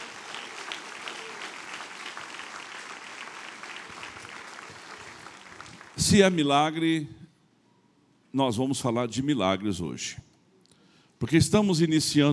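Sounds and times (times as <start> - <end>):
audience applause: 0.0 - 6.3
speech: 6.0 - 7.2, 8.4 - 10.3, 11.2 - 12.3.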